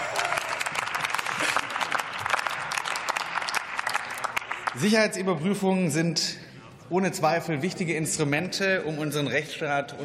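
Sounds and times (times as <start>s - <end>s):
applause in parliament: 0.0s - 5.0s
speech: 4.8s - 10.0s.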